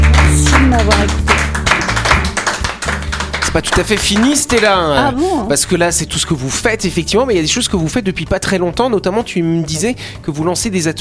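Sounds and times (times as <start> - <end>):
applause: 0.0 - 5.2
speech: 3.6 - 11.0.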